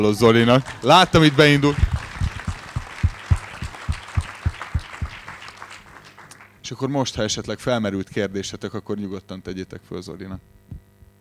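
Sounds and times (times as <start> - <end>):
speech: 0.0 - 1.9, 6.7 - 10.8
small audience clapping: 0.0 - 6.6.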